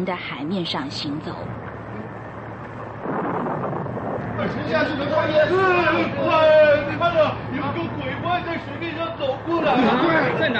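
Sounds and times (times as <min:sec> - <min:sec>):
speech: 0:00.0 - 0:01.6, 0:04.4 - 0:10.5
thunderstorm roar: 0:02.2 - 0:05.5.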